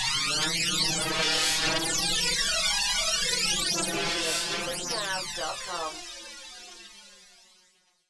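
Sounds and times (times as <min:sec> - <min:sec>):
hard scanner drone: 0:00.2 - 0:06.3.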